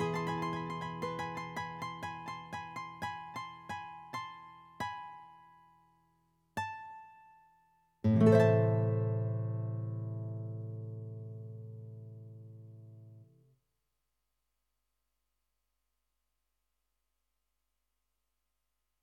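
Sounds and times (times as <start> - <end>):
guitar: 0.0 - 5.6, 6.6 - 13.4.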